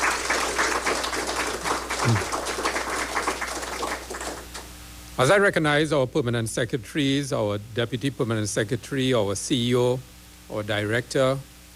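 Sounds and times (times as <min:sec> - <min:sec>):
crowd applause: 0:00.0 - 0:04.6
speech: 0:02.1 - 0:02.4, 0:05.2 - 0:11.5.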